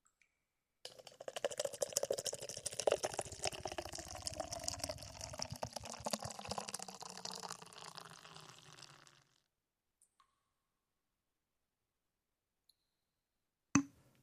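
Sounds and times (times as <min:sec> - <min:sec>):
freshly opened beer being poured out: 0:00.9 - 0:09.3.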